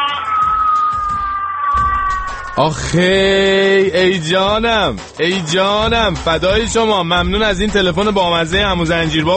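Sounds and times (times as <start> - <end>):
person imitating a wolf howl: 0.1 - 2.6
speech: 2.6 - 9.3.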